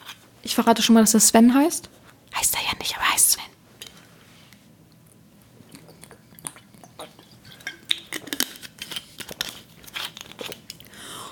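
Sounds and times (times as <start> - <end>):
speech: 0.4 - 2.0
person sipping a drink: 5.0 - 11.3.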